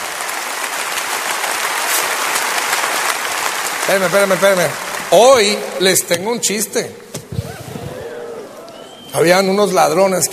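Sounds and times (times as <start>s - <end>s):
audience applause: 0.0s - 6.0s, 7.4s - 9.2s
speech: 3.9s - 7.2s, 9.2s - 10.3s.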